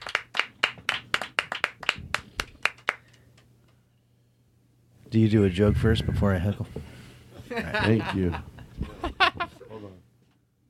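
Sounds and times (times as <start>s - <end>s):
audience applause: 0.0s - 3.0s
speech: 5.1s - 7.0s, 7.6s - 8.5s
laughter: 7.4s - 9.8s.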